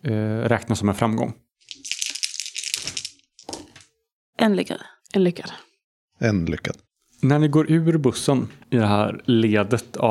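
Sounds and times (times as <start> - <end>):
speech: 0.0 - 1.5, 4.4 - 10.0
dice rolling: 1.7 - 3.9.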